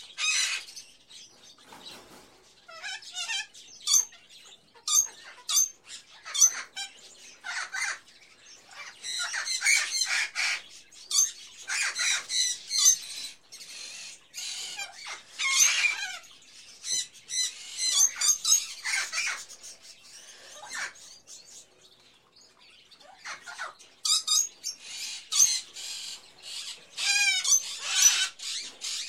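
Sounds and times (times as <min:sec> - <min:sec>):
various birds in a pet shop: 0:00.0 - 0:29.0.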